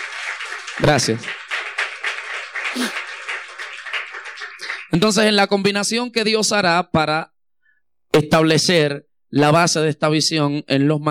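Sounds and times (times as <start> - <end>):
crowd applause: 0.0 - 5.4
speech: 0.8 - 1.4, 2.8 - 3.0, 5.0 - 7.3, 8.2 - 11.0.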